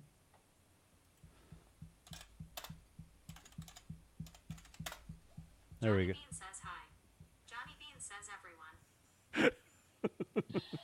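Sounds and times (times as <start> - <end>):
typing on a computer keyboard to post in Twitch chat: 1.2 - 6.9
steady low ticking pulse: 1.2 - 7.8
speech: 5.8 - 6.5, 10.4 - 10.8.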